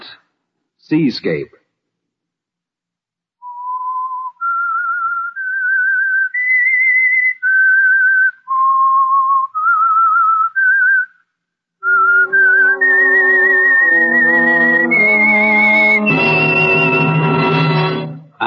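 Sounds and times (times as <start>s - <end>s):
speech: 0.9s - 1.6s
whistled theme tune: 3.4s - 11.2s, 11.8s - 18.2s
orchestral swell: 12.0s - 18.3s.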